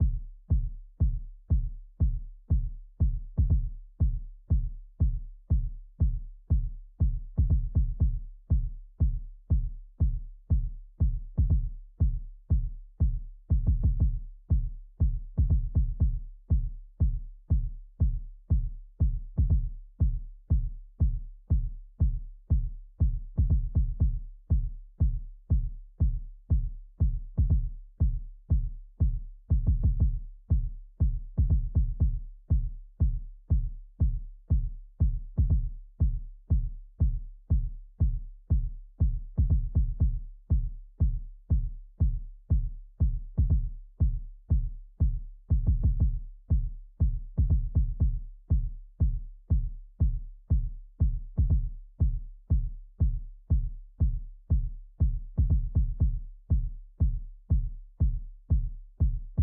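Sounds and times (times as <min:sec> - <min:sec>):
kick drum: 0:00.0 - 0:59.4.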